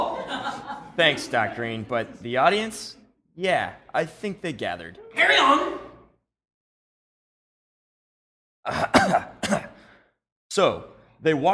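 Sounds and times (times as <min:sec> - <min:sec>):
laughter: 0:00.0 - 0:02.6
speech: 0:01.0 - 0:05.9, 0:08.6 - 0:09.3, 0:10.6 - 0:11.5
harsh raspy coughing during an asthma attack: 0:08.7 - 0:10.0.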